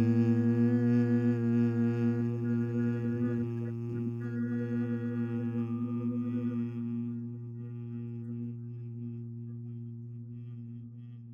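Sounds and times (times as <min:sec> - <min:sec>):
group humming together: 0:00.0 - 0:08.2.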